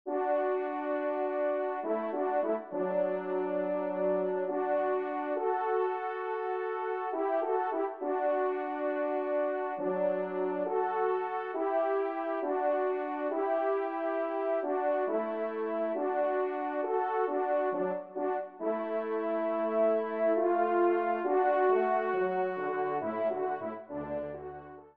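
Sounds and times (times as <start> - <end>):
horn duo ensemble: 0.1 - 24.9.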